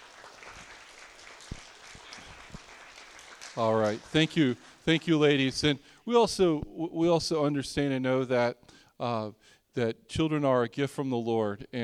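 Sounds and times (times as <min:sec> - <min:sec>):
audience round of applause: 0:00.0 - 0:05.8
speech: 0:03.6 - 0:11.8.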